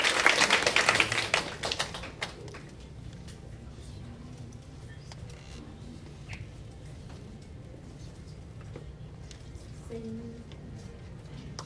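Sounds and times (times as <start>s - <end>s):
audience applause: 0.0s - 2.7s.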